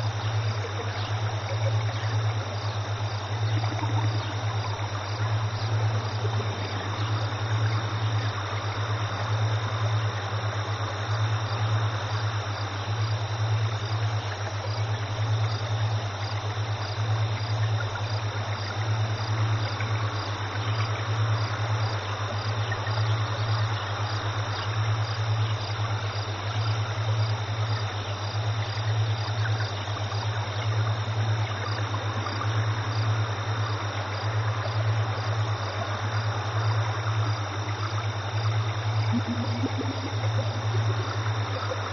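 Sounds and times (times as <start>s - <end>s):
ambience: 0.0s - 41.9s
alpha frequency tones: 38.7s - 41.8s.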